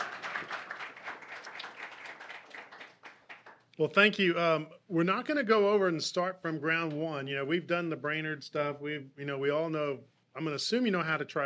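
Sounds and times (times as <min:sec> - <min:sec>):
audience applause: 0:00.0 - 0:03.6
speech: 0:03.8 - 0:11.4.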